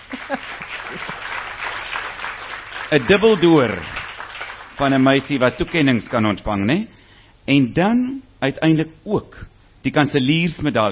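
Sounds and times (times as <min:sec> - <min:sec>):
audience applause at a university awards ceremony: 0:00.0 - 0:06.2
speech: 0:00.3 - 0:01.2, 0:02.9 - 0:04.0, 0:04.8 - 0:10.8.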